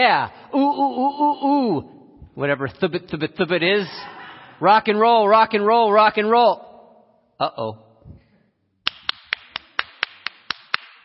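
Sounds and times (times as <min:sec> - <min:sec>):
speech: 0:00.0 - 0:06.7, 0:07.4 - 0:07.8
clap: 0:08.8 - 0:11.0.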